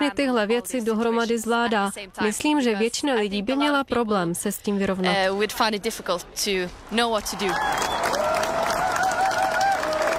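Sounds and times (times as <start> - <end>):
speech: 0.2 - 8.2
crowd applause: 7.2 - 10.1.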